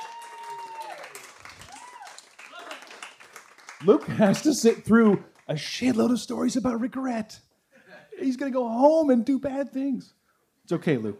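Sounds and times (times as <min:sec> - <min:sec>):
audience applause at a live storytelling show: 0:00.0 - 0:06.2
speech: 0:03.8 - 0:07.5, 0:08.2 - 0:11.1.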